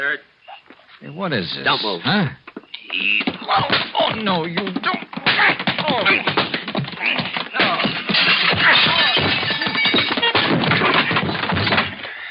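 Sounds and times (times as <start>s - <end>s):
speech: 0.0s - 0.4s, 1.0s - 9.4s
voices and effortful sounds in a radio drama fight: 0.5s - 9.3s
blows landing on a man in a radio drama fight: 3.0s - 12.1s.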